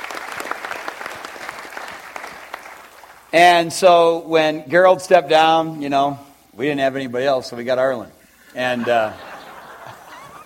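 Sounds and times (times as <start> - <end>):
audience applause: 0.0 - 3.3
speech: 3.3 - 9.3
laughter: 8.6 - 10.4.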